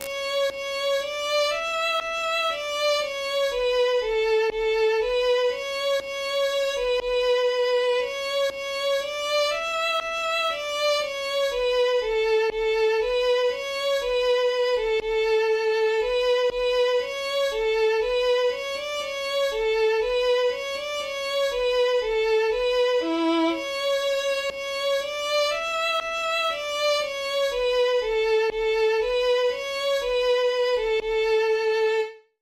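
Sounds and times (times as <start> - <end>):
violin: 0.0 - 32.4.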